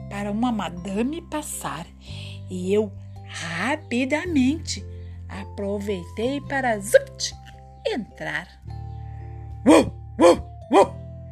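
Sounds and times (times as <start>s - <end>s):
speech: 0.2s - 8.7s, 9.6s - 11.0s
fierce guard dog barking: 9.6s - 11.0s.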